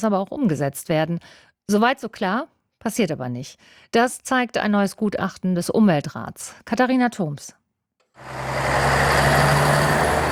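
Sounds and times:
speech: 0:00.0 - 0:07.6, 0:08.2 - 0:09.8
traffic at a busy city intersection, Stuttgart Neckartor: 0:08.2 - 0:10.3.

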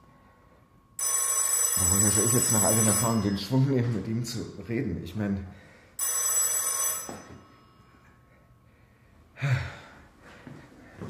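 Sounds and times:
telephone ringing: 0:01.0 - 0:03.7, 0:06.0 - 0:07.9
speech: 0:01.8 - 0:05.6.

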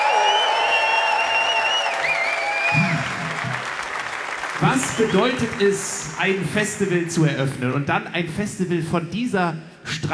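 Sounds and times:
audience applause and cheering at the Rudolstadt festival: 0:00.0 - 0:07.4
speech: 0:04.6 - 0:10.1.

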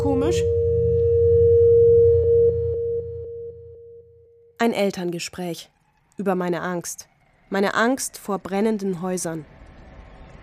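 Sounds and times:
low droning hum: 0:00.0 - 0:04.4
steady electronic alarm tone: 0:00.0 - 0:04.6
speech: 0:00.2 - 0:00.6, 0:04.6 - 0:09.6.

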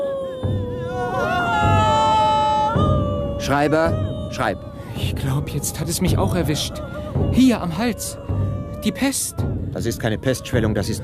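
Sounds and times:
mourning women wailing and weeping: 0:00.0 - 0:11.0
speech: 0:03.4 - 0:11.0.

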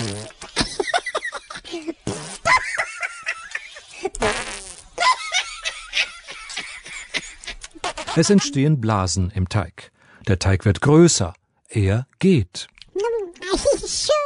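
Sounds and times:
fart: 0:00.0 - 0:00.5, 0:02.0 - 0:02.6, 0:04.1 - 0:05.0, 0:07.8 - 0:08.4
laughter: 0:00.4 - 0:04.2, 0:05.0 - 0:08.7
speech: 0:08.2 - 0:12.8.

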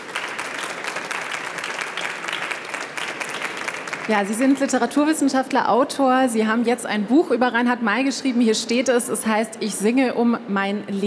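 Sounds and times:
audience applause: 0:00.0 - 0:04.9
speech: 0:04.1 - 0:11.0.

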